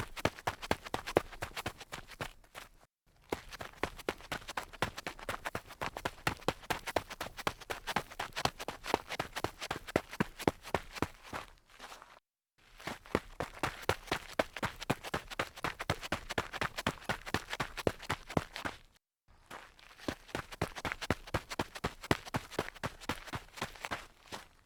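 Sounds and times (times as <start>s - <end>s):
sneakers running on light grit: 0.0s - 11.5s, 13.0s - 18.9s, 20.0s - 24.6s.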